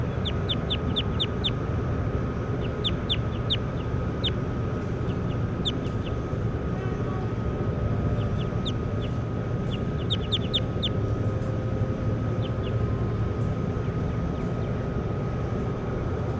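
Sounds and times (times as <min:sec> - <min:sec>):
short high-pitched bird chirps: 0:00.0 - 0:01.6, 0:02.6 - 0:06.2, 0:08.1 - 0:11.0, 0:12.4 - 0:12.8
steady low rumbling hum: 0:00.0 - 0:16.3.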